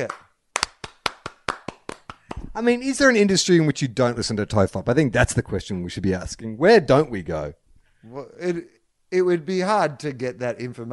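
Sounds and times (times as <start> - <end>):
speech: 0.0 - 0.2, 2.6 - 10.9
hand clapping: 0.0 - 2.6.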